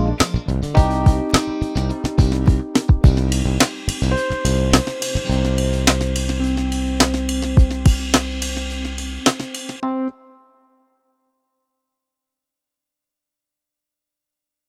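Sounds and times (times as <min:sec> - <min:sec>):
crispy Motown soul music: 0:00.0 - 0:10.7.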